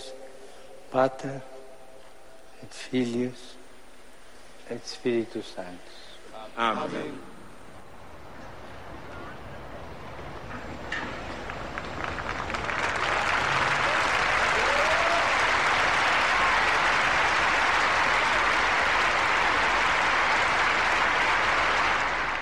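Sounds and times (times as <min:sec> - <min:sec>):
speech: 0:00.9 - 0:01.5, 0:02.6 - 0:03.6, 0:04.7 - 0:06.0, 0:06.6 - 0:07.3
pilgrims applauding in the square: 0:11.1 - 0:22.4.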